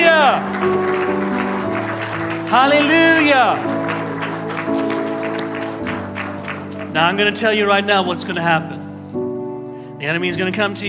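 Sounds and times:
audience hand clap of praise: 0:00.0 - 0:07.7
speech: 0:02.5 - 0:03.8, 0:06.9 - 0:08.8, 0:10.0 - 0:10.8.

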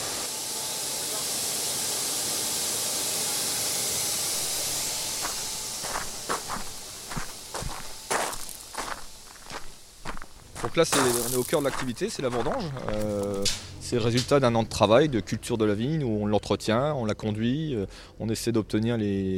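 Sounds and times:
pneumatic grape press releasing air: 0:01.3 - 0:10.3
footsteps: 0:04.4 - 0:14.4
speech: 0:10.7 - 0:19.3
sharp knocks: 0:13.4 - 0:14.4.

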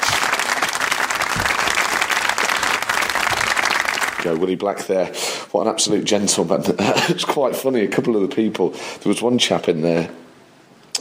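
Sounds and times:
round of applause: 0:00.0 - 0:04.4
speech: 0:04.2 - 0:10.2.

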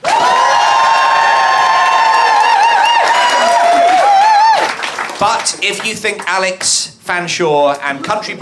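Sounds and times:
crowd cheering with high whoops: 0:00.0 - 0:05.0
audience applause: 0:00.0 - 0:06.3
speech: 0:05.2 - 0:08.4.

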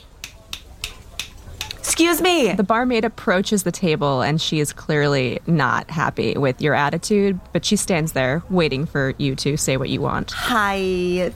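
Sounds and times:
finger snapping: 0:00.2 - 0:01.8
speech: 0:02.0 - 0:11.3.

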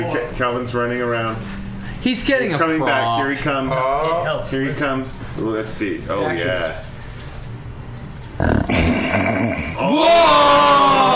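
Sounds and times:
speech: 0:00.0 - 0:06.9, 0:09.3 - 0:10.9
person imitating a lion's roar: 0:08.4 - 0:11.1.

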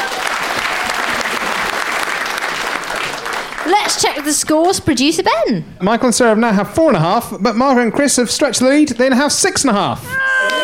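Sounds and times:
round of applause: 0:00.0 - 0:04.8
speech: 0:03.9 - 0:10.3.

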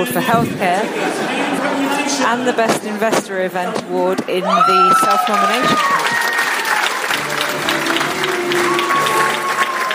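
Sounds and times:
speech: 0:00.0 - 0:06.2
crowd murmur: 0:00.0 - 0:09.9
large audience applause at awards ceremony: 0:04.8 - 0:09.9.

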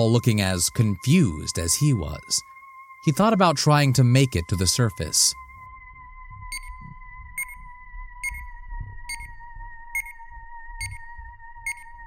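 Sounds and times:
speech: 0:00.0 - 0:05.4
watch beeping: 0:06.4 - 0:12.0.

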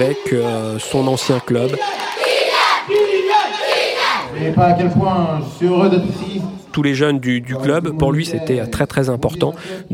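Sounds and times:
speech: 0:00.0 - 0:02.2, 0:04.4 - 0:09.9
enthusiastic crowd cheering: 0:00.0 - 0:04.4.

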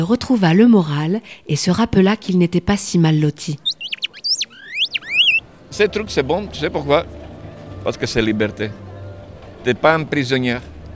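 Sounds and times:
speech: 0:00.0 - 0:03.6, 0:05.8 - 0:07.2, 0:07.8 - 0:08.8, 0:09.6 - 0:10.7
bird-call whistle imitating a nightingale: 0:03.6 - 0:05.4.

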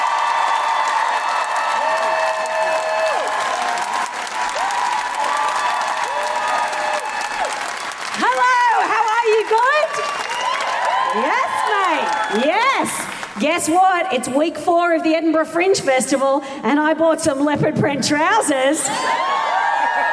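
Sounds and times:
live audience applauding to welcome a comedian at an Edinburgh Fringe comedy show: 0:00.0 - 0:14.0
speech: 0:13.5 - 0:19.4.

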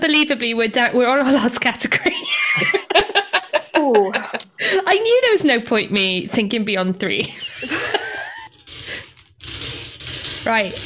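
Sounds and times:
speech: 0:00.0 - 0:03.0, 0:03.9 - 0:08.1, 0:10.4 - 0:10.8
laughter: 0:01.9 - 0:04.9, 0:07.2 - 0:09.0
ball being rotated with gritty grinding crunch: 0:07.6 - 0:10.8
clicky ratchet-like texture: 0:08.5 - 0:10.8.

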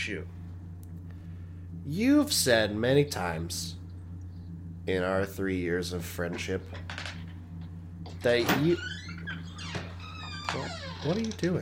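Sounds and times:
speech: 0:00.0 - 0:00.4, 0:01.8 - 0:03.8, 0:04.8 - 0:07.0, 0:08.2 - 0:09.0, 0:10.5 - 0:11.5
low hum: 0:00.0 - 0:11.5
squeaky door hinge creaking: 0:08.2 - 0:11.5.

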